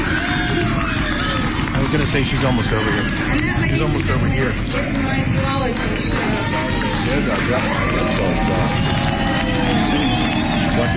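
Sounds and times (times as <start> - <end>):
crowd cheering wildly: 0.0 - 10.9
speech: 1.9 - 8.9, 10.8 - 10.9.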